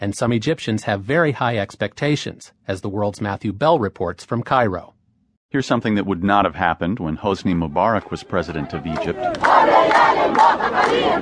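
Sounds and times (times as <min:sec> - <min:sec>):
speech: 0:00.0 - 0:11.2
demonstrators chanting at palace gate of Qasr al-Ittihadiyya in Cairo: 0:08.0 - 0:11.2.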